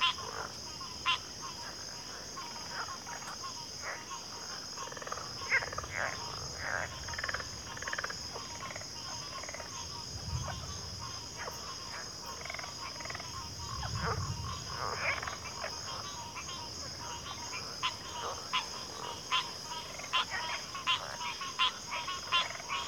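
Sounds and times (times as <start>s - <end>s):
crickets trilling: 0.0s - 22.8s
frogs calling: 0.0s - 22.8s
low rumble: 13.6s - 14.8s.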